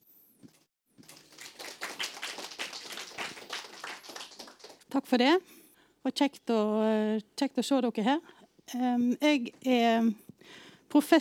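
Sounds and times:
audience applauding: 0:01.0 - 0:04.8
speech: 0:04.9 - 0:11.2.

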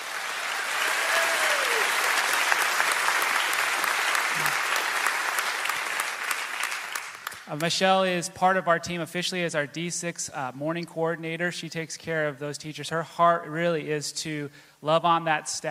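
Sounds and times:
church congregation applause during a Christmas-season service: 0:00.0 - 0:07.6
speech: 0:07.5 - 0:15.6.

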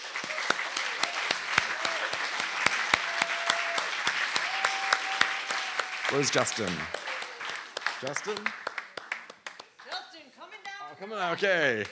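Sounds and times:
crowd applauding: 0:00.0 - 0:10.0, 0:11.3 - 0:11.9
whistles and whoops: 0:04.4 - 0:05.9
speech: 0:06.1 - 0:07.0, 0:08.0 - 0:08.6, 0:11.0 - 0:11.9.

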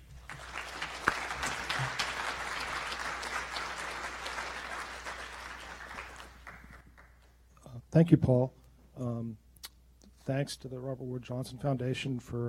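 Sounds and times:
audience applause welcoming two speakers: 0:00.0 - 0:07.3
speech: 0:08.0 - 0:09.4, 0:10.3 - 0:12.4.

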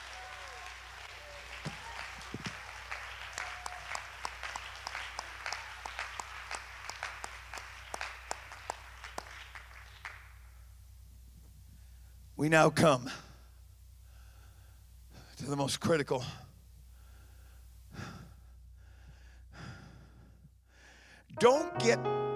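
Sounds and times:
audience clapping hands: 0:00.0 - 0:10.6
speech: 0:12.4 - 0:13.2, 0:15.5 - 0:16.4, 0:21.4 - 0:22.2.

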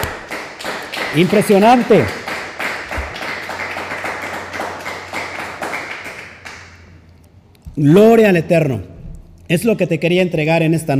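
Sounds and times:
crowd clapping loudly: 0:00.0 - 0:07.0
speech: 0:01.1 - 0:02.2, 0:07.8 - 0:08.9, 0:09.5 - 0:10.9.

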